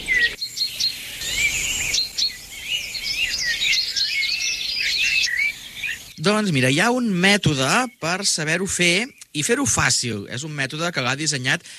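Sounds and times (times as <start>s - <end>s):
bird singing: 0.0s - 11.7s
soft outdoor background: 0.0s - 11.7s
speech: 6.2s - 11.7s.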